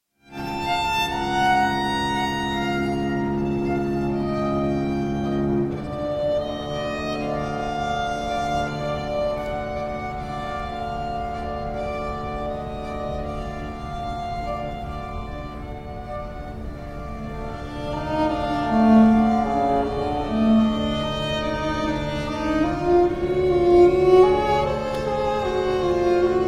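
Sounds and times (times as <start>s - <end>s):
string quartet: 0.2s - 26.4s.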